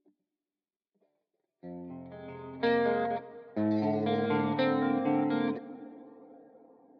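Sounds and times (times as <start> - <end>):
guitar: 1.6 - 6.9.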